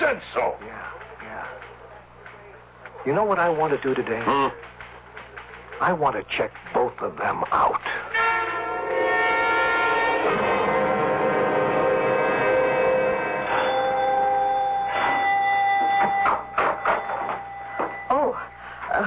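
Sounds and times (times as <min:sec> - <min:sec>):
speech: 0:00.1 - 0:01.7, 0:03.0 - 0:04.7, 0:05.8 - 0:08.0, 0:10.2 - 0:10.8
doorbell ringing: 0:08.2 - 0:18.6.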